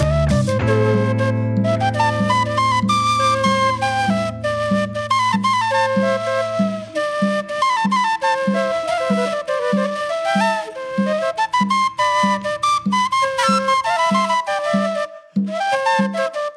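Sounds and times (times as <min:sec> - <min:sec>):
cumbia music: 0:00.0 - 0:16.3.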